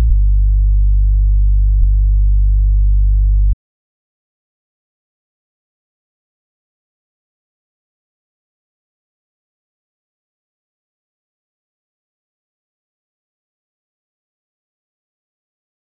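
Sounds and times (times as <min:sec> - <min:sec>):
bass: 0:00.0 - 0:03.6.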